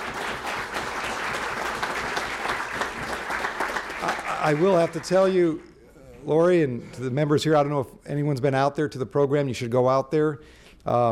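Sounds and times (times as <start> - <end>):
audience applause: 0.0 - 5.6
speech: 4.4 - 11.0.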